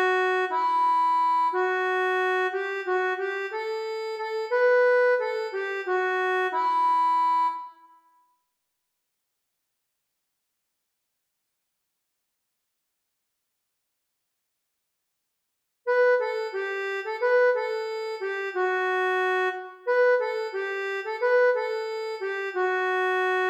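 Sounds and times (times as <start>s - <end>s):
accordion: 0.0s - 8.0s, 15.9s - 23.4s.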